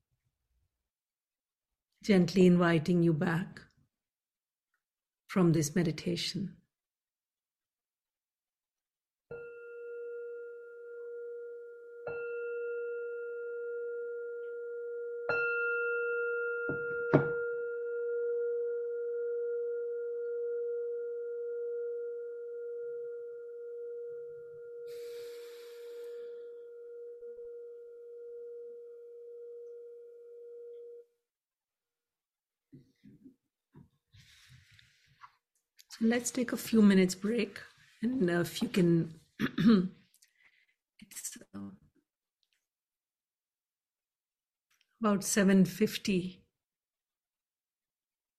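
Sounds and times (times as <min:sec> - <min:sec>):
speech: 0:02.0 - 0:03.7, 0:05.3 - 0:06.6, 0:36.0 - 0:40.0, 0:45.0 - 0:46.4
meditation bell ringing: 0:09.3 - 0:31.0.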